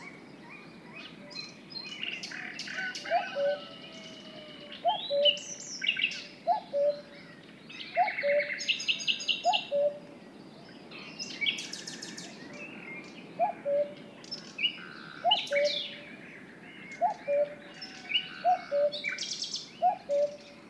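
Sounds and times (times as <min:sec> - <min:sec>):
small birds chirping and twittering: 0:00.0 - 0:20.6
cuckoo calling: 0:02.2 - 0:07.2, 0:07.9 - 0:10.1, 0:13.3 - 0:14.1, 0:14.7 - 0:16.1, 0:16.8 - 0:20.6.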